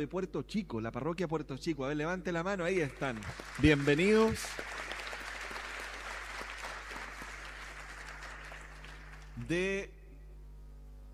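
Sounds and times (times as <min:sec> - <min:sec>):
speech: 0:00.0 - 0:04.9, 0:09.4 - 0:10.0
audience applause in a large room: 0:02.8 - 0:09.4.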